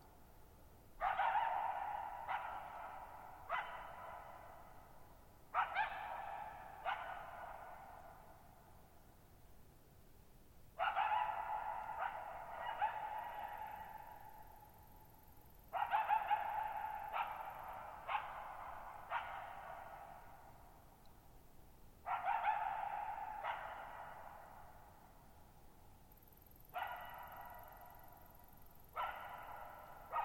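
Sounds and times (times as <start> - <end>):
coyote barks: 1.0 - 8.5, 10.8 - 14.8, 15.7 - 20.9, 22.0 - 25.3, 26.1 - 30.2.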